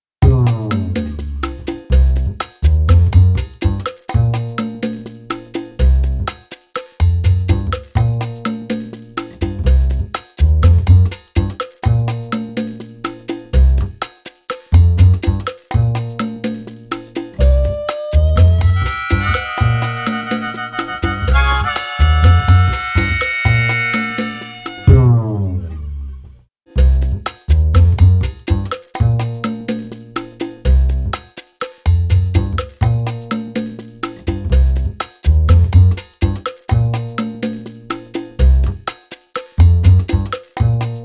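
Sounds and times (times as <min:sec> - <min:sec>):
bass: 0:00.0 - 0:41.0.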